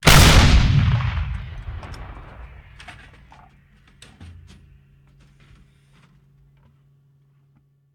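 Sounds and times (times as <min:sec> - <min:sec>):
artillery cannon firing: 0:00.0 - 0:03.5.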